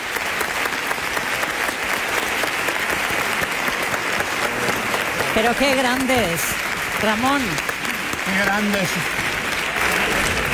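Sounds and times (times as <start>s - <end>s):
audience applause: 0.0s - 10.5s
speech: 5.4s - 7.7s, 8.3s - 9.2s.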